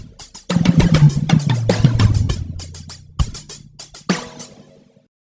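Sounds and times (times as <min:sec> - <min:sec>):
synthwave remix: 0:00.5 - 0:04.0.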